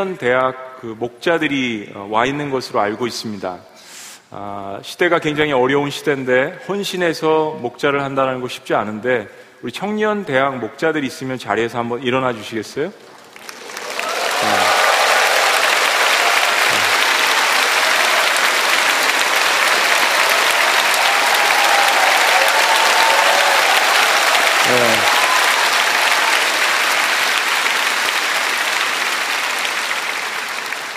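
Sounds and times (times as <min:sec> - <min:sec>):
speech: 0:00.0 - 0:03.7, 0:04.3 - 0:13.1
audience applause: 0:13.2 - 0:30.9.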